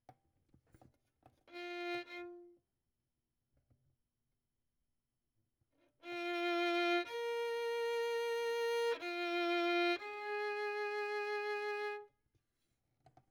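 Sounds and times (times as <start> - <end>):
violin: 1.4 - 2.6, 5.9 - 12.1.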